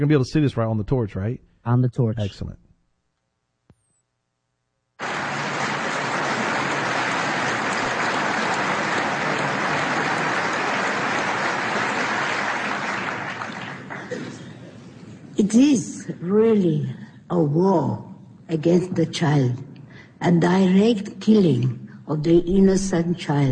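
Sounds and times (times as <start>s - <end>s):
speech: 0.0s - 2.6s, 15.4s - 23.5s
audience applause: 5.0s - 14.5s.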